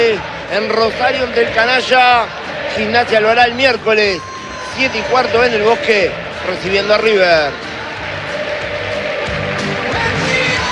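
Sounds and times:
Racing stadium crowd applauding departing team: 0.0 - 10.7
speech: 0.1 - 7.7.

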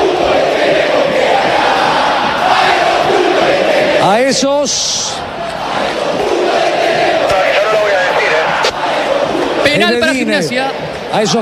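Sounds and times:
stadium crowd shouting: 0.0 - 11.4
speech: 4.1 - 5.1, 9.8 - 11.4.

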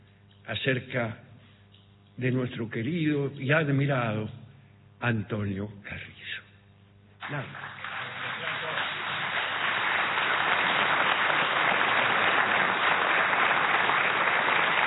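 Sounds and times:
speech: 0.5 - 1.2, 2.2 - 4.4, 5.0 - 6.1, 7.3 - 7.6
audience applause: 7.2 - 14.8.

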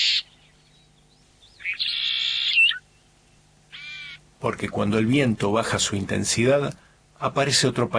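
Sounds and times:
bird calling in open grassland: 0.0 - 4.3
speech: 4.4 - 7.9.

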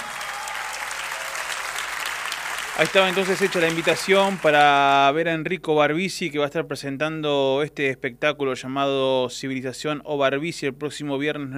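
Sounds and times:
audience applause: 0.0 - 4.9
speech: 2.8 - 11.5.

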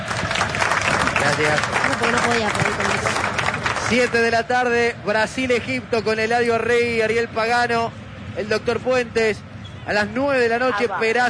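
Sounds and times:
applause: 0.0 - 4.5
speech: 1.2 - 3.2, 3.9 - 11.2.

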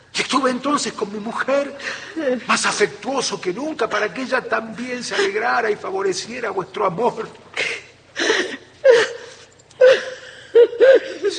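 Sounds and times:
speech: 0.3 - 7.4
person weeping: 5.0 - 5.6, 7.6 - 11.3.

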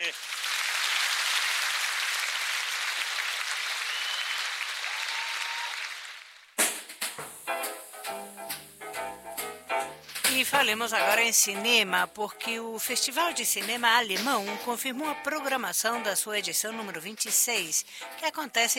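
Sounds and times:
audience applause: 0.0 - 6.6
music: 6.6 - 18.7
speech: 10.4 - 18.7.

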